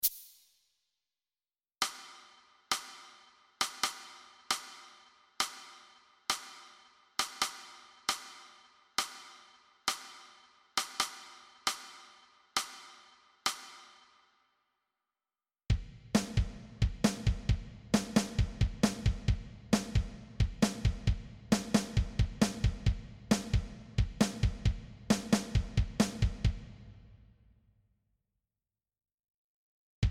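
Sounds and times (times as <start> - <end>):
drums: 1.8 - 14.0, 15.7 - 27.4.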